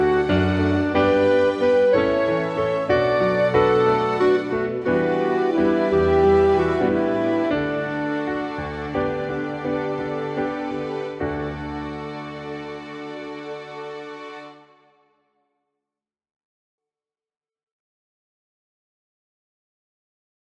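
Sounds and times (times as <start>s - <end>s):
instrumental melody track: 0.0s - 15.0s.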